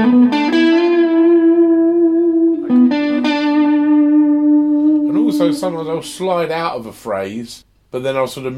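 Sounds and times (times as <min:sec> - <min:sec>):
electric guitar notes through a delay effect: 0:00.0 - 0:06.4
speech: 0:05.4 - 0:08.5.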